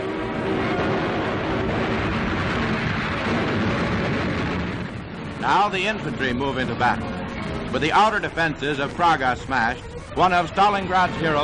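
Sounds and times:
artillery barrage gunfire: 0.9s - 7.2s
speech: 5.4s - 11.4s.

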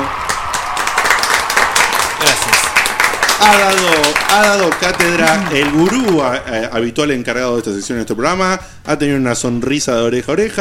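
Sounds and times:
applause: 0.0s - 6.6s
speech: 3.4s - 10.5s.

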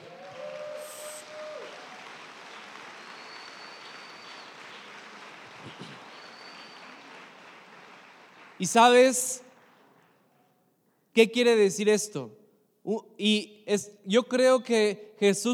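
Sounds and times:
audience applause: 0.0s - 10.2s
speech: 8.6s - 9.4s, 11.2s - 15.5s.

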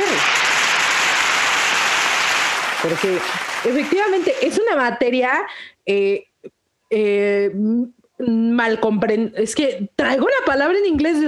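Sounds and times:
crowd applause: 0.0s - 4.7s
speech: 2.8s - 11.2s.

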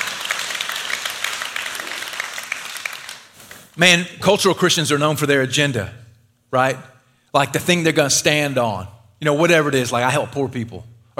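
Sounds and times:
audience clapping: 0.0s - 3.7s
speech: 3.8s - 11.1s.

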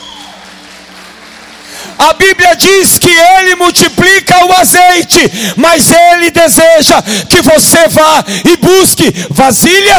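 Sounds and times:
audience applause: 0.0s - 2.5s
speech: 2.0s - 9.9s.

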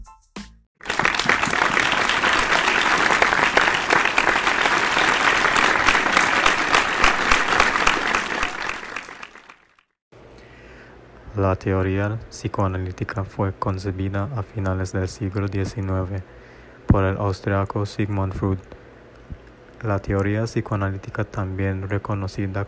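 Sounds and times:
warm audience applause: 0.8s - 9.9s
speech: 11.4s - 18.8s, 19.8s - 22.6s.

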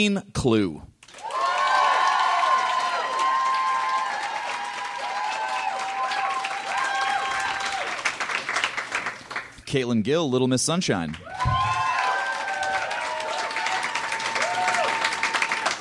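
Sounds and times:
speech: 0.0s - 0.9s, 9.7s - 11.3s
crowd clapping: 1.0s - 9.6s, 11.1s - 15.8s
cheers and whoops: 1.1s - 8.1s, 11.2s - 15.8s.

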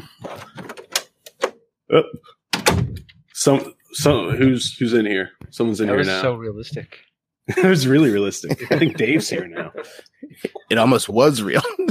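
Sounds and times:
speech: 1.9s - 2.4s, 3.4s - 11.8s
door closing: 2.5s - 3.2s
laughter: 7.5s - 11.8s.

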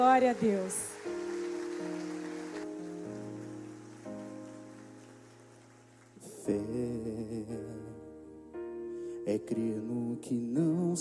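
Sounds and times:
speech: 0.0s - 0.9s
audience applauding: 0.0s - 6.7s
sustained keyboard chords: 0.0s - 10.8s.

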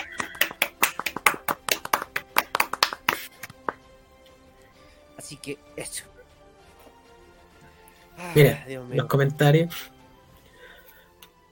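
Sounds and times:
applause: 0.0s - 3.9s
speech: 5.2s - 6.2s, 8.2s - 9.9s.

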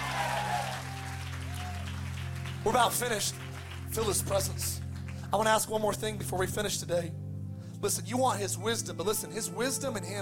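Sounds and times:
audience shouting: 0.0s - 1.8s
audience hand clapping: 0.0s - 5.7s
speech: 2.6s - 7.2s, 7.8s - 10.2s.

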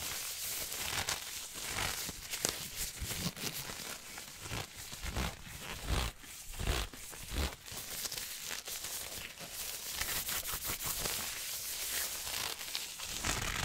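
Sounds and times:
gloves crinkling and rubbing: 0.0s - 13.6s.

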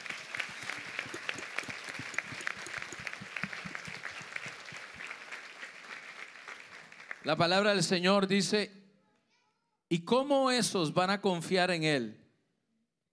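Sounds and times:
audience applause: 0.0s - 7.3s
speech: 7.2s - 8.8s, 9.9s - 12.2s.

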